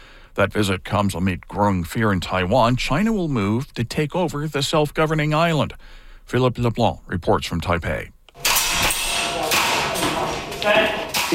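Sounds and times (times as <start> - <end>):
speech: 0.4 - 8.2, 10.6 - 11.3
air guns firing at targets in a basement: 8.4 - 11.3
busy noisy background: 8.4 - 11.3.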